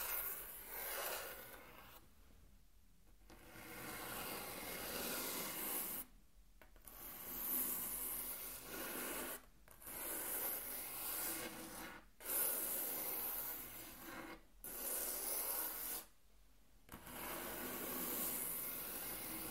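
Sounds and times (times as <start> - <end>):
table tracing scraping and rubbing strokes: 0.0 - 2.2, 3.3 - 6.1, 6.8 - 16.2, 16.9 - 19.5.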